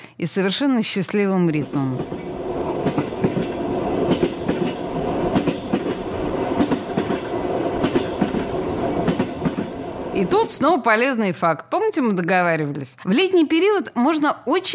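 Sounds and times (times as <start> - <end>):
speech: 0.2 - 2.3, 10.2 - 14.7
train wheels clacking on rails: 1.6 - 10.8.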